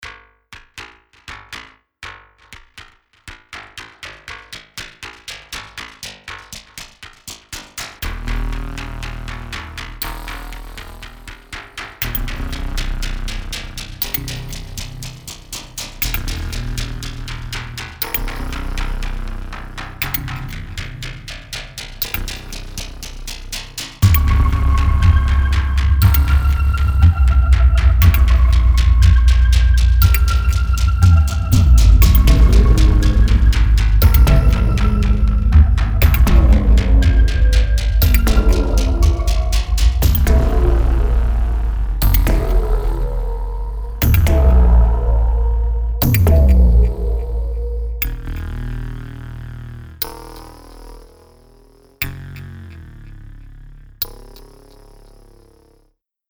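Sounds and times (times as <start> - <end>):
drums: 4.4 - 48.5.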